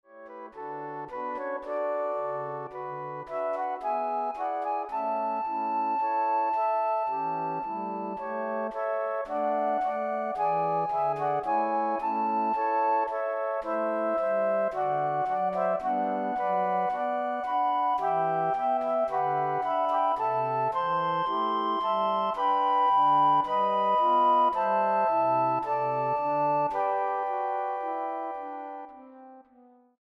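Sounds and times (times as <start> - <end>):
flute ensemble playing: 1.2 - 29.0.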